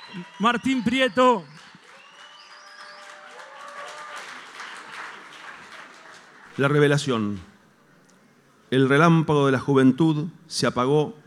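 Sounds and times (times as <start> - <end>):
high whistles: 0.0 - 3.2
audience applause: 0.0 - 6.7
speech: 0.1 - 1.6, 6.6 - 7.5, 8.7 - 11.2.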